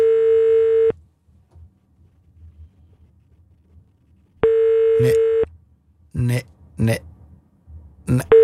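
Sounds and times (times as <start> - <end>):
phone line ringback tone, unanswered call: 0.0 - 0.9, 4.4 - 5.5
person talking: 5.0 - 5.2, 6.1 - 7.0, 8.1 - 8.4.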